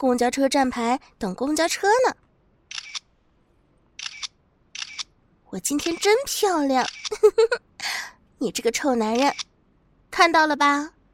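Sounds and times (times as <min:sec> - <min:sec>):
speech: 0:00.0 - 0:02.2, 0:05.5 - 0:09.5, 0:10.1 - 0:11.0
camera shutter clicks from selfie photos being snapped: 0:02.7 - 0:03.1, 0:04.0 - 0:05.1, 0:06.8 - 0:07.2, 0:09.2 - 0:09.5.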